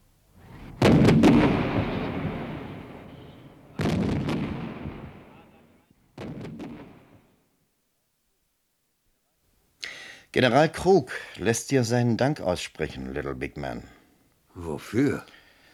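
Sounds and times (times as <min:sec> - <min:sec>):
artillery battery cannon shots booming: 0:00.4 - 0:07.3
speech: 0:10.3 - 0:14.0, 0:14.6 - 0:15.4.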